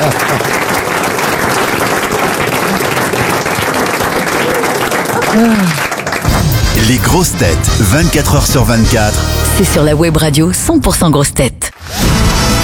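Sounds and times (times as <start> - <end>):
studio audience applause: 0.0 - 9.1, 11.8 - 12.6
speech: 5.4 - 5.8, 6.9 - 11.7.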